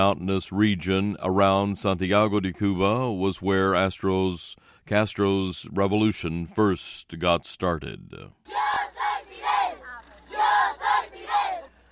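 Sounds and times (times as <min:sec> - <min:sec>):
speech: 0:00.0 - 0:09.3
children shouting in the streets of Santiago: 0:08.5 - 0:11.7.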